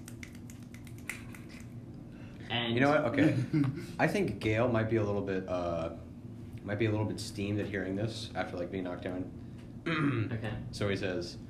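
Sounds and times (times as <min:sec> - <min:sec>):
finger snapping: 0:00.0 - 0:01.8
speech: 0:02.5 - 0:11.4.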